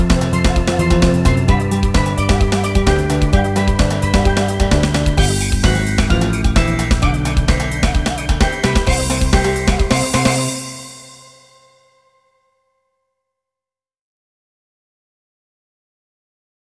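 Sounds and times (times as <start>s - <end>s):
race victory jingle melody: 0.0s - 11.8s.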